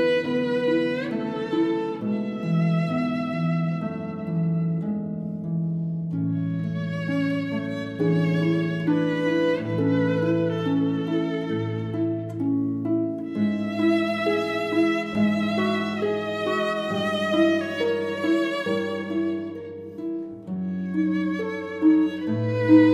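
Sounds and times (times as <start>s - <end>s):
harp: 0.0s - 22.9s
violin: 0.0s - 22.9s.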